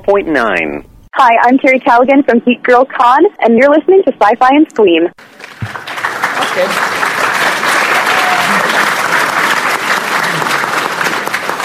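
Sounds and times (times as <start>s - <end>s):
speech: 0.0s - 5.9s, 6.6s - 7.0s
audience clapping: 5.2s - 11.6s.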